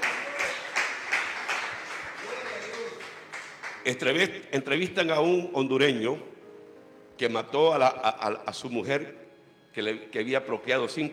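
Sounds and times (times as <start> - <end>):
audience clapping hands in a steady quick rhythm: 0.0 - 4.1
speech: 3.9 - 6.3, 7.2 - 9.2, 9.8 - 11.1.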